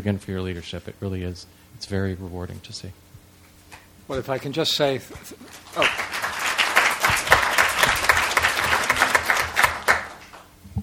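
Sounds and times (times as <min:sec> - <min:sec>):
speech: 0:00.0 - 0:03.0, 0:04.1 - 0:06.2
audience applause: 0:05.4 - 0:10.5.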